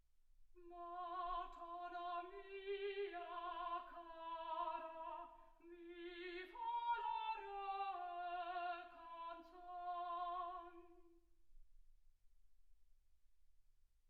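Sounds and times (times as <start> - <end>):
soprano singing: 0.6 - 11.2.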